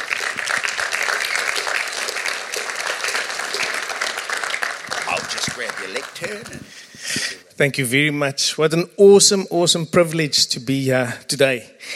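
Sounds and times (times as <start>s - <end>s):
audience applause: 0.0s - 6.7s
speech: 5.6s - 6.8s, 7.6s - 11.9s.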